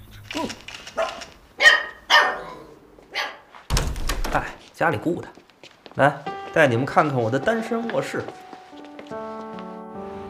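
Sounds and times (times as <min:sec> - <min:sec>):
speech: 0:00.4 - 0:01.1, 0:04.8 - 0:05.4, 0:06.0 - 0:08.4
household dog barking: 0:01.0 - 0:03.5.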